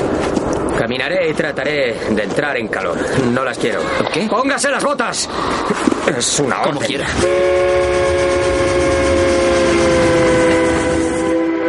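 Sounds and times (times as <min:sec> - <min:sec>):
low rumble of the Trans-Siberian Railway train: 0:00.0 - 0:11.6
speech: 0:00.9 - 0:08.6
Trans-Siberian Railway train horn 320 kilometres from Irkutsk: 0:07.2 - 0:11.6.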